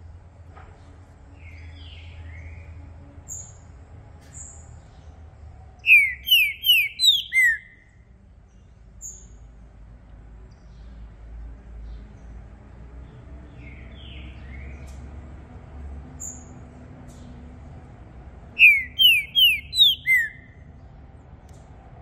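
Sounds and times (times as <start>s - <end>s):
green-winged saltator singing descending whistles: 5.8s - 8.0s, 18.5s - 20.6s.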